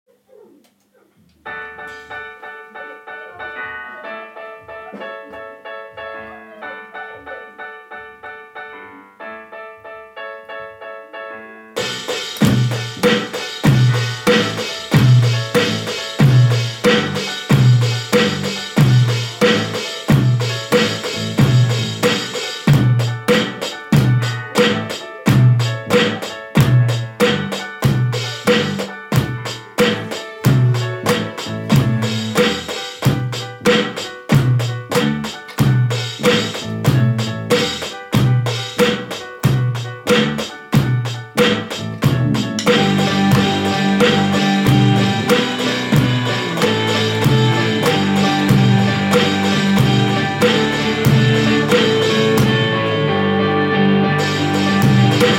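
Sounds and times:
drums: 11.8s - 55.3s.

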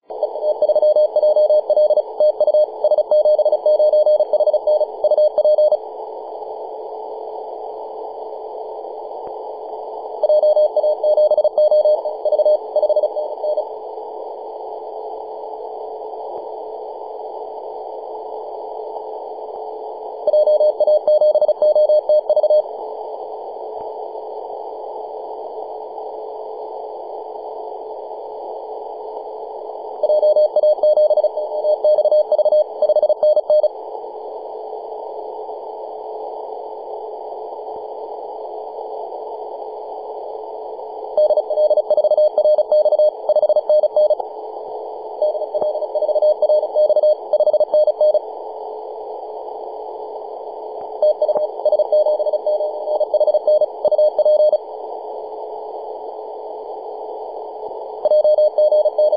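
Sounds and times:
CW Morse code tones on 24.910 MHz: 0.2s - 5.8s, 10.2s - 13.6s, 20.3s - 22.6s, 30.0s - 33.7s, 41.2s - 44.2s, 45.2s - 48.2s, 51.0s - 54.6s, 58.0s - 59.1s.

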